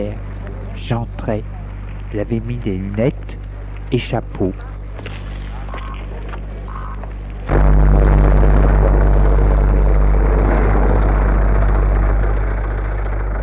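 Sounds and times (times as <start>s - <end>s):
speech: 0.0s - 3.2s, 3.9s - 4.7s
old car engine starting and running: 0.0s - 13.4s.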